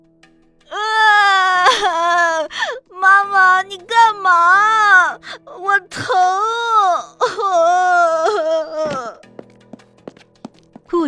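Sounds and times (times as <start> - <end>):
young child crying loudly: 0.7 - 9.2.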